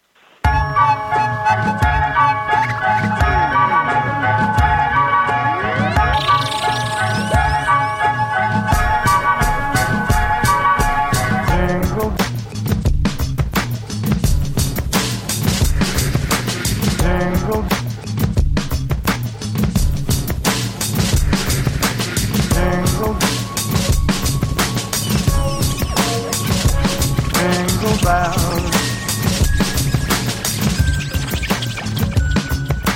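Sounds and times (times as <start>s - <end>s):
bell-like chimes: 0.5s - 10.2s, 23.3s - 32.9s
festive Christmas song played on air: 0.5s - 12.1s, 22.5s - 31.2s
punchy rhythmic beat: 5.8s - 32.9s.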